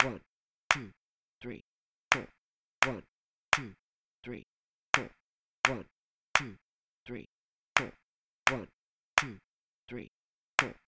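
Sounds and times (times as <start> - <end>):
clapping: 0.0 - 0.9, 2.1 - 3.8, 5.0 - 6.6, 7.8 - 9.4, 10.6 - 10.8.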